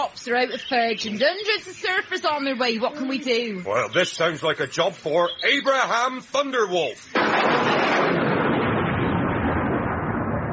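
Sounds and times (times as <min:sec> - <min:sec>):
speech: 0:00.0 - 0:08.3
thunder: 0:07.2 - 0:10.5.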